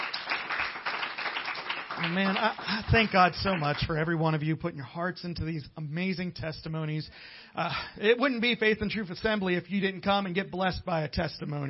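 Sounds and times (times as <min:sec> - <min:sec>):
audience clapping hands: 0:00.0 - 0:04.3
speech: 0:02.0 - 0:11.6.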